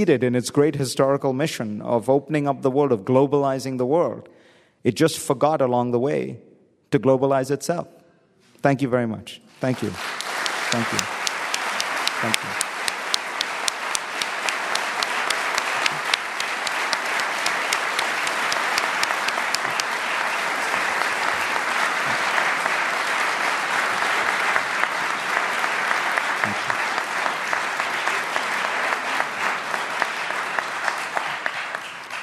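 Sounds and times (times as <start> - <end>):
speech: 0.0 - 8.0, 8.6 - 10.1, 10.7 - 11.2, 12.2 - 12.6
audience applause: 9.7 - 32.2.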